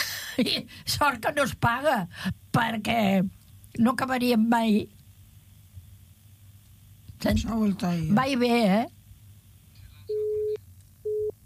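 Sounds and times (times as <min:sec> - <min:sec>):
speech: 0:00.4 - 0:05.0, 0:07.2 - 0:09.0
telephone busy tone after a cut-off call: 0:10.1 - 0:11.3.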